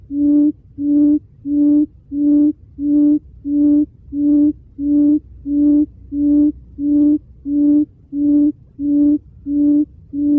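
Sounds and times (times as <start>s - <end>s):
quail hooting: 0.0s - 10.3s.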